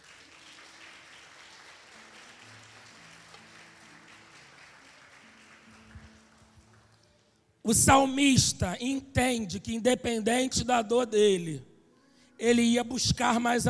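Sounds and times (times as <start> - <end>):
audience applause: 0.0 - 7.2
speech: 7.7 - 11.7, 12.4 - 13.6.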